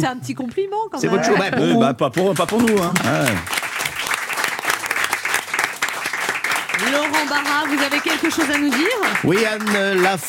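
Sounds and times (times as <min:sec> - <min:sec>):
speech: 0:00.0 - 0:03.6, 0:07.0 - 0:10.2
crowd applause: 0:02.2 - 0:10.2.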